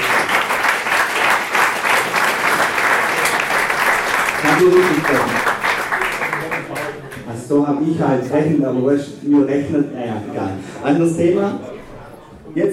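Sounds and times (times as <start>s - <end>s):
audience applause: 0.0s - 7.3s
speech: 4.6s - 5.4s, 7.5s - 11.7s, 12.5s - 12.7s.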